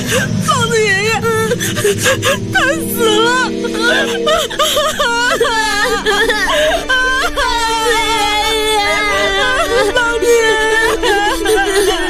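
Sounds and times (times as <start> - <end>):
children crying and wailing loudly: 0.0 - 12.0
speech: 0.1 - 7.0.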